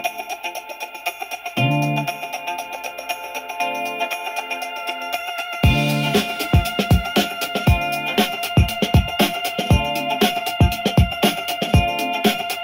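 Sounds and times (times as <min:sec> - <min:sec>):
urban beat: 0:00.0 - 0:12.6.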